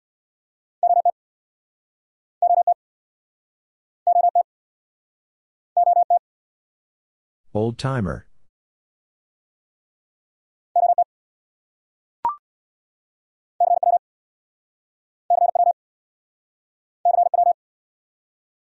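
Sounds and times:
Morse code sent at 50 wpm: 0.8s - 1.1s, 2.4s - 2.8s, 4.1s - 4.4s, 5.8s - 6.2s, 13.6s - 14.0s, 15.3s - 15.8s, 17.1s - 17.6s
speech: 7.5s - 8.3s.

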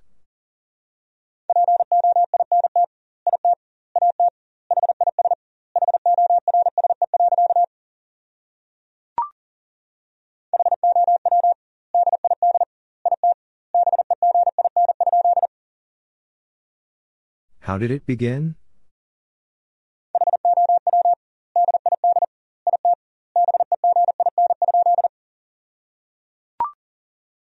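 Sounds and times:
Morse code tones at 40 wpm: 1.5s - 7.7s, 10.6s - 15.5s, 20.2s - 25.1s
speech: 17.7s - 18.6s.

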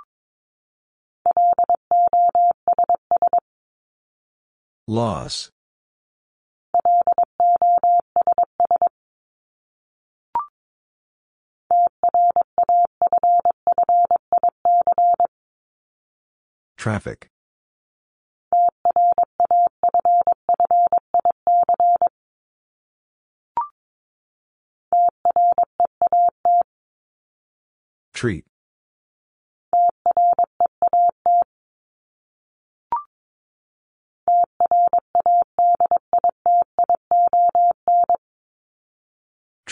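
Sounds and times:
Morse code tones at 22 words per minute: 1.3s - 3.4s, 6.8s - 8.9s, 11.8s - 15.3s, 18.6s - 22.1s, 25.0s - 26.7s, 29.8s - 31.5s, 34.3s - 38.2s
speech: 4.9s - 5.5s, 16.8s - 17.3s, 28.2s - 28.5s.

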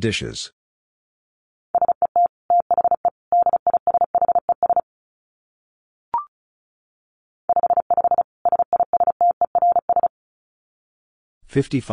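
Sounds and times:
rapid Morse code tones at 35 wpm: 1.8s - 4.8s, 7.5s - 10.1s.

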